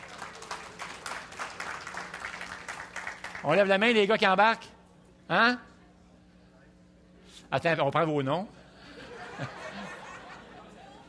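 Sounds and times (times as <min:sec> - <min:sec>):
audience of men applauding: 0:00.0 - 0:03.7
speech: 0:03.4 - 0:05.7, 0:07.5 - 0:08.6, 0:09.4 - 0:09.6
laughter: 0:08.7 - 0:11.0.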